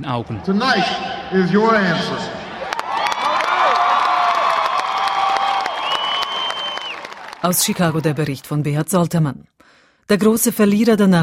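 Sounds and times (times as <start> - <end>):
speech: 0.0 - 2.4, 7.4 - 11.2
large crowd cheering and shouting: 0.1 - 8.2
large crowd applauding: 2.4 - 8.5.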